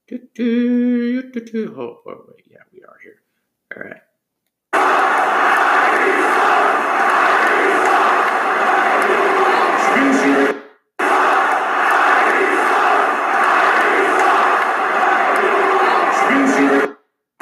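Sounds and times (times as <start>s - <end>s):
speech: 0.4s - 4.1s
arena crowd chanting at basketball game: 4.7s - 17.4s.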